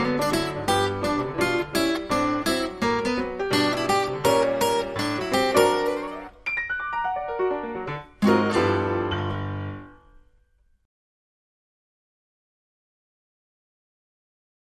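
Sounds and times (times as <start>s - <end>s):
blues music: 0.0s - 10.2s.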